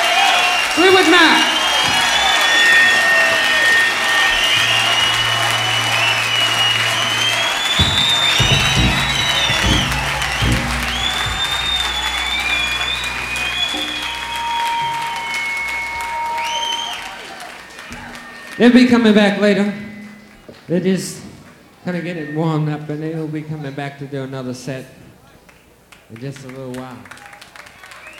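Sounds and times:
audience applause: 0.0s - 19.2s, 27.0s - 28.1s
audience cheering: 0.0s - 20.2s
speech: 18.6s - 19.9s, 20.7s - 21.2s, 21.8s - 25.0s, 26.1s - 27.2s.

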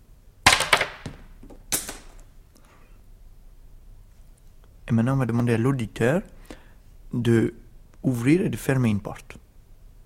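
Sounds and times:
ballpoint pen falling: 0.4s - 2.3s
speech: 4.9s - 6.4s, 7.1s - 9.4s.

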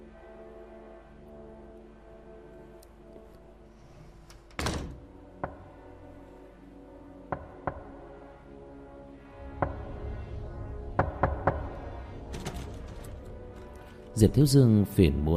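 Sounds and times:
sharp knocks on a door at night: 5.4s - 5.7s, 7.3s - 8.0s, 11.0s - 11.8s
speech: 14.2s - 15.3s.

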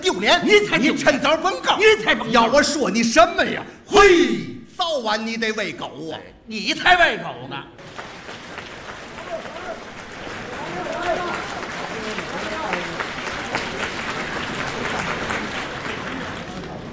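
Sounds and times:
speech: 0.1s - 8.1s
audience applause: 7.8s - 16.9s.

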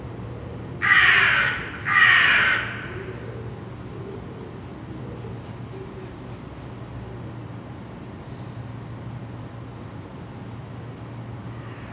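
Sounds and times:
low steady traffic hum: 0.0s - 5.8s
crow cawing: 0.8s - 3.2s.

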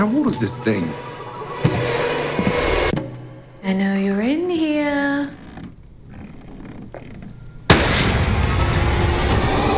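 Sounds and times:
speech: 0.0s - 1.1s, 3.7s - 5.4s
steady tone: 0.0s - 3.8s
gunshot in the film Ready or Not: 7.7s - 9.6s.

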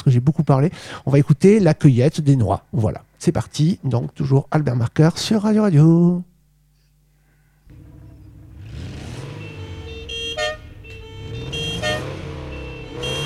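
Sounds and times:
speech: 0.1s - 6.3s
car horns honking: 7.7s - 13.2s
traffic rumble: 7.7s - 13.2s.

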